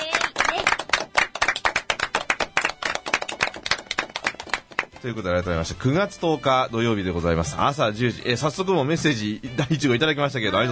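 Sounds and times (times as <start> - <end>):
studio applause from a small group: 0.0 - 5.2
speech: 5.0 - 10.6.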